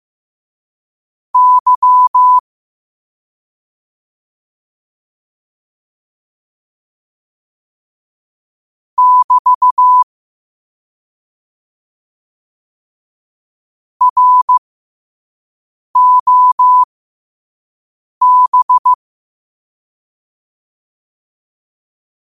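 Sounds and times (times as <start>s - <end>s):
morse code at 5 wpm: 1.4s - 2.4s, 9.0s - 10.0s, 14.0s - 14.6s, 16.0s - 16.9s, 18.2s - 19.0s.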